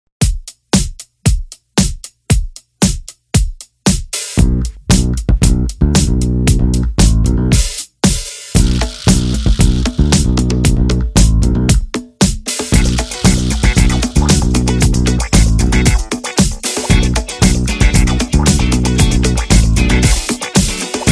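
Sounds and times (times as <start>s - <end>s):
funky corporate music: 0.2s - 21.0s.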